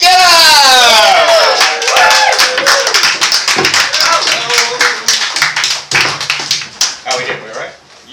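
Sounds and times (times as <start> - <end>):
person whooping: 0.0 - 3.1
audience applause at a comedy show: 0.8 - 7.2.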